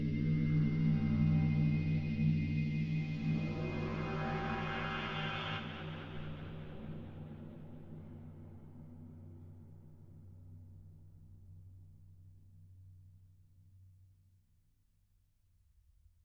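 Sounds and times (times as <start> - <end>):
spooky sci-fi music: 0.0 - 8.7.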